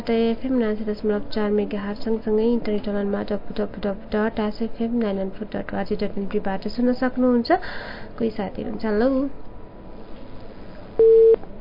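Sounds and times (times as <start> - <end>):
speech: 0.0 - 9.4
low noise: 0.0 - 11.5
telephone line beep after a radio phone-in caller was cut off: 11.0 - 11.4.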